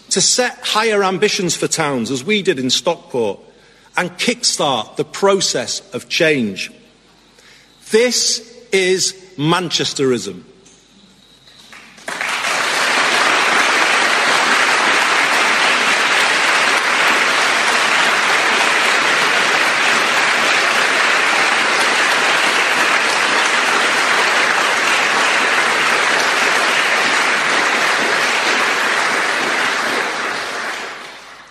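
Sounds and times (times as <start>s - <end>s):
speech: 0.2s - 6.8s, 7.9s - 10.5s
audience applause: 11.7s - 31.4s.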